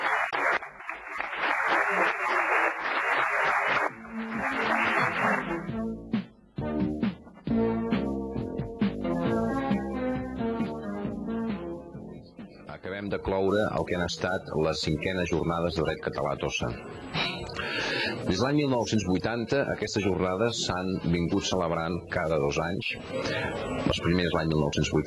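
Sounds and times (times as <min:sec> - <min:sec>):
audience applause: 0:00.0 - 0:05.7
music: 0:03.5 - 0:25.0
speech: 0:13.2 - 0:17.3, 0:18.3 - 0:25.0.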